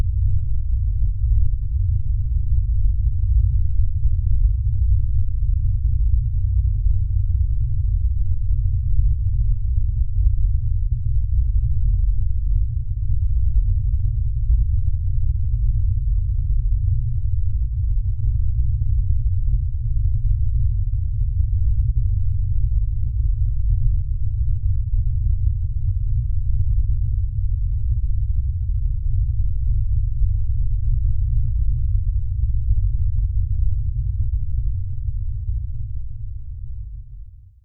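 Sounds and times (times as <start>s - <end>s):
dark heavy rumbling science fiction drone: 0.0s - 37.6s.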